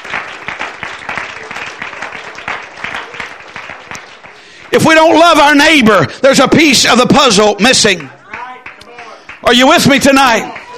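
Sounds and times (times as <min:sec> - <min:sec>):
audience hand clapping in praise: 0:00.0 - 0:05.4, 0:07.8 - 0:10.7
speech: 0:04.7 - 0:08.2, 0:09.5 - 0:10.6.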